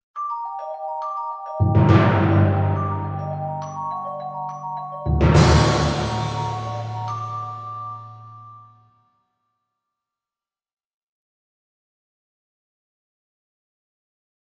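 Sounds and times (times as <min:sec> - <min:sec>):
mystical percussion: 0:01.6 - 0:08.6.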